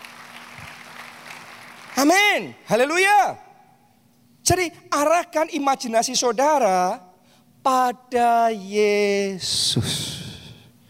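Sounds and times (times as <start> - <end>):
audience applause: 0.0 - 2.1
speech: 2.0 - 3.4, 4.4 - 10.2.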